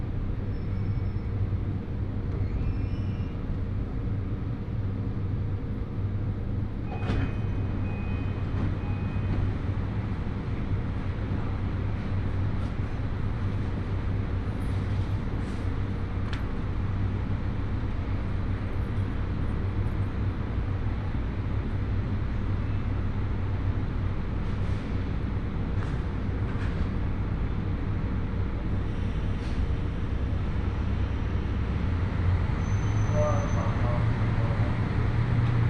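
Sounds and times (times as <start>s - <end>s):
Hōhi Line 821 series train carriage rumbling: 0.0s - 35.6s.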